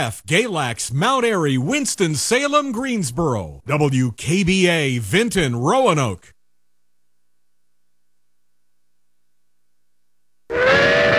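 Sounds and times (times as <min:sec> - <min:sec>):
speech: 0:00.0 - 0:06.4
train whistle as train departs: 0:10.5 - 0:11.1.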